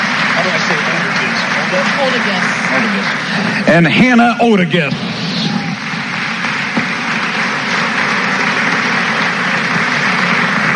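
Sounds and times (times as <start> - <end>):
audience applause: 0.0 - 10.7
speech: 1.7 - 5.2.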